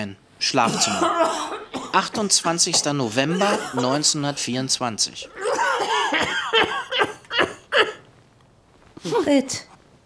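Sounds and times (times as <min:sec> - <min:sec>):
speech: 0:00.0 - 0:06.2, 0:09.3 - 0:09.7
man coughing harshly in a villa bedroom: 0:00.6 - 0:04.3, 0:05.3 - 0:08.0.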